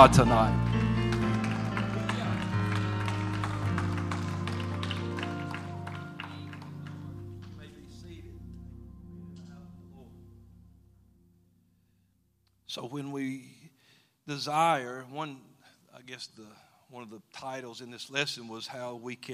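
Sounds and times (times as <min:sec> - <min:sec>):
speech: 0:00.0 - 0:00.6, 0:12.8 - 0:13.6, 0:14.3 - 0:19.3
crowd clapping: 0:00.0 - 0:08.1
low tonal drone: 0:00.0 - 0:11.8.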